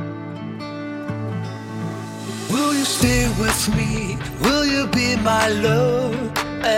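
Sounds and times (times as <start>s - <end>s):
power intro music: 1.3s - 6.7s.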